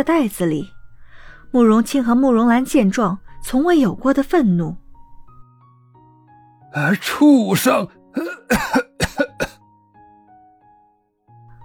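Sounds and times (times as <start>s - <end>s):
speech: 0.0s - 0.8s, 1.5s - 4.8s, 6.7s - 9.2s
violent coughing: 6.8s - 9.6s.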